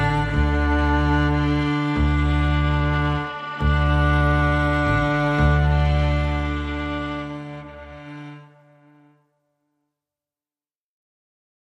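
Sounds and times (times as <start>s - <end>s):
bass: 0.0s - 8.9s
strings: 0.0s - 9.3s.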